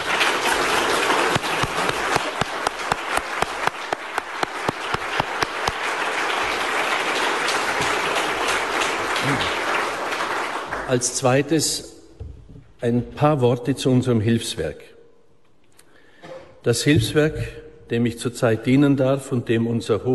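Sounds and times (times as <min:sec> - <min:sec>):
audience applause: 0:00.0 - 0:11.2
speech: 0:10.9 - 0:11.9, 0:12.8 - 0:14.9, 0:16.6 - 0:20.1.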